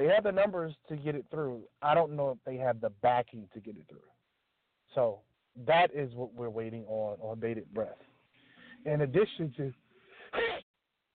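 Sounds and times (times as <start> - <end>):
speech: 0.0 - 4.1, 4.9 - 8.1, 8.8 - 10.5
sneeze: 10.3 - 10.6.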